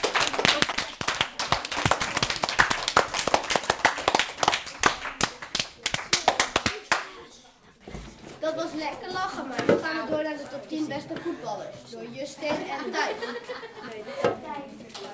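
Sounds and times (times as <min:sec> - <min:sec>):
audience applause: 0:00.0 - 0:07.1
speech: 0:08.8 - 0:15.1
laughter: 0:12.5 - 0:14.4.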